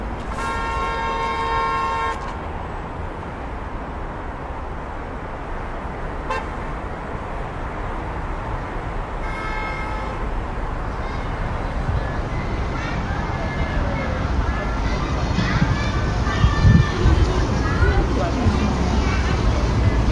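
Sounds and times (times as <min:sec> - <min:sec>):
low traffic rumble: 0:00.0 - 0:20.1
summer old street city murmur: 0:00.0 - 0:20.1
horn-like tone: 0:00.3 - 0:02.3, 0:06.3 - 0:06.5
scattered voices: 0:09.3 - 0:20.1.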